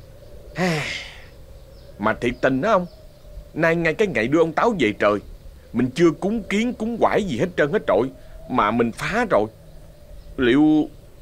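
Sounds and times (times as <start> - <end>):
man panting while doing manual work: 0.6 - 1.3
speech: 2.0 - 3.0, 3.6 - 9.6, 10.4 - 11.0.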